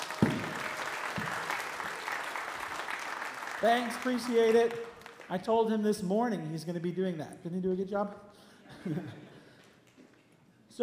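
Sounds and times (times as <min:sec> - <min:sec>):
audience applause: 0:00.0 - 0:05.4
speech: 0:03.6 - 0:09.2
laughter: 0:08.7 - 0:09.6.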